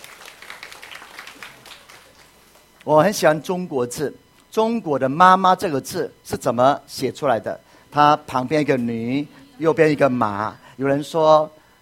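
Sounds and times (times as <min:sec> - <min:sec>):
applause for mothers at a church gathering: 0:00.0 - 0:02.9
speech: 0:02.8 - 0:11.6.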